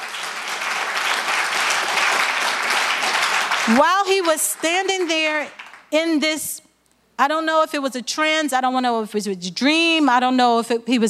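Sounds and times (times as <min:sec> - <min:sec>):
audience clapping: 0:00.0 - 0:05.9
speech: 0:03.7 - 0:06.6, 0:07.2 - 0:11.0.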